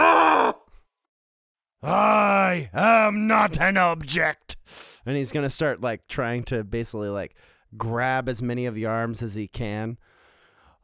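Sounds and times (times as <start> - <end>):
performed pained scream as vocal foley: 0.0 - 0.7, 1.8 - 3.1
speech: 1.8 - 10.1
faint trailing breath: 7.4 - 7.7, 10.0 - 10.8.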